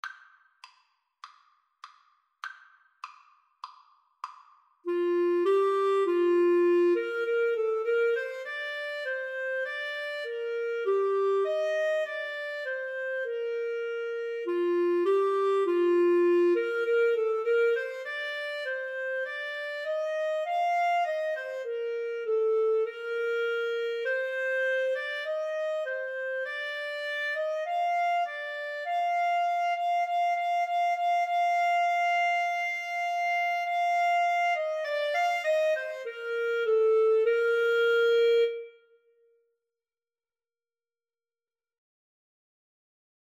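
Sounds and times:
clarinet duet: 4.9s - 39.3s.

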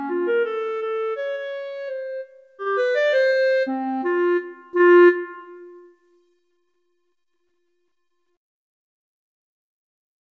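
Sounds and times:
flute and clarinet duet: 0.0s - 6.2s.

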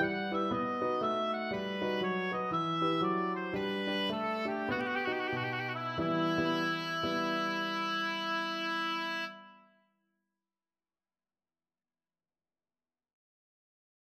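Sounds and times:
oboe playing a bourrée: 0.0s - 9.6s.

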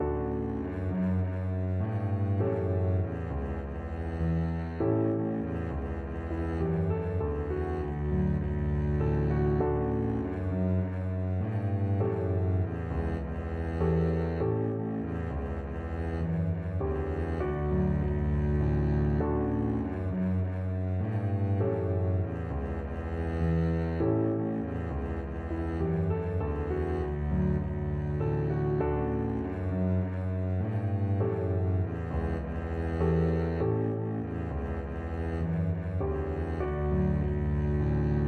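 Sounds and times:
double bass playing a lullaby: 0.0s - 38.2s.

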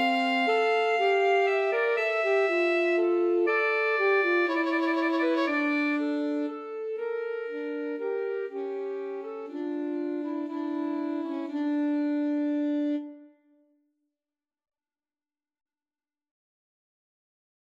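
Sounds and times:
alto sax trio playing a pastorale: 0.0s - 13.2s.

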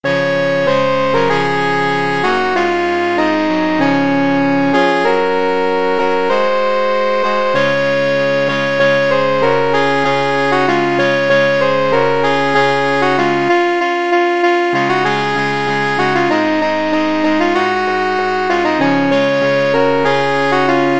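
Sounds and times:
saxophone quartet playing: 0.1s - 20.9s.

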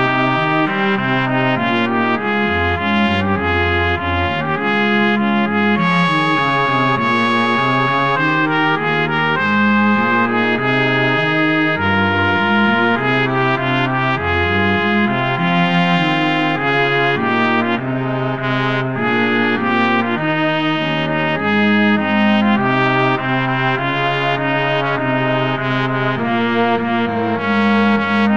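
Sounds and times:
strings: 0.0s - 28.3s
trumpet: 0.0s - 28.3s.

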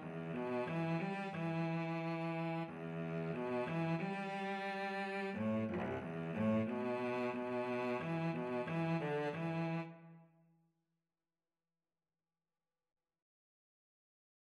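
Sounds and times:
cello duet: 0.0s - 10.2s.

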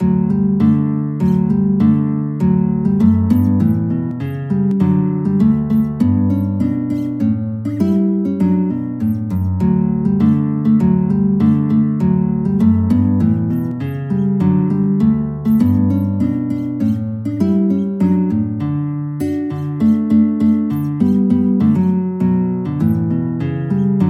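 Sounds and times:
guitar: 0.0s - 24.0s.

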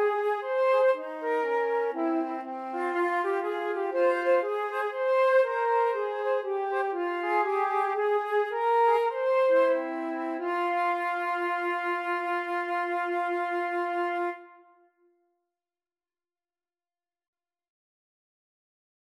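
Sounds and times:
flute trio playing a baroque bourree: 0.0s - 14.8s.

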